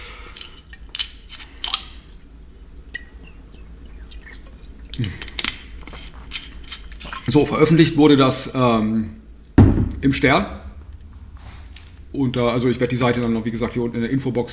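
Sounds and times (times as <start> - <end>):
low steady hum: 0.0 - 14.5
person sipping water with wet mouth sounds and gulps: 4.1 - 7.3
speech: 5.0 - 5.3, 7.3 - 9.2, 10.0 - 10.6, 12.2 - 14.5.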